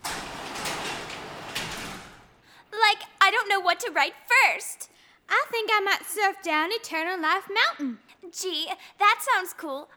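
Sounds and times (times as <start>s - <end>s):
gate sliding open: 0.0s - 2.4s
speech: 3.6s - 9.9s.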